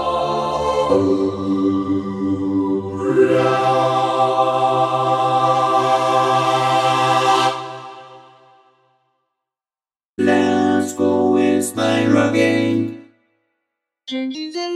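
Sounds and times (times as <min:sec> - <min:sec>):
synthesizer vocoder vocal: 0:00.0 - 0:08.0, 0:10.2 - 0:13.1, 0:14.1 - 0:14.7.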